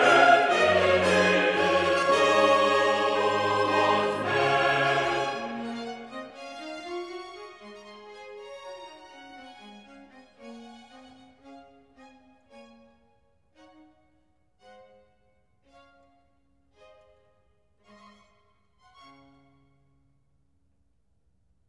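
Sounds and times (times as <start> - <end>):
chorus singing: 0.0 - 6.2.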